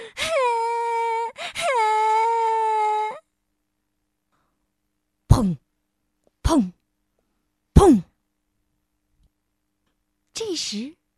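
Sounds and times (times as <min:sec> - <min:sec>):
child wailing and crying loudly: 0:00.2 - 0:03.2
speech: 0:05.4 - 0:05.6, 0:06.5 - 0:06.8, 0:07.8 - 0:08.1, 0:10.6 - 0:11.0.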